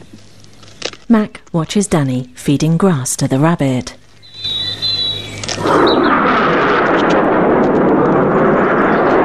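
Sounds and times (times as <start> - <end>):
speech: 1.1 - 4.0, 5.6 - 6.1
fighter jet flying over: 4.4 - 9.2.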